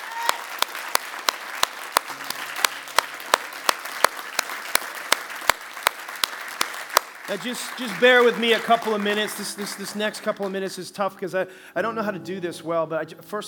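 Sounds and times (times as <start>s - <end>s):
audience applause, hand clapping: 0.0s - 10.7s
speech: 7.3s - 13.4s.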